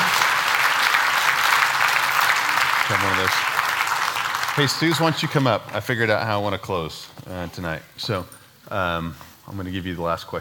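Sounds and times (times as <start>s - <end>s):
crowd applause for performers at a live show: 0.0s - 6.1s
speech: 2.9s - 3.5s, 4.6s - 10.3s.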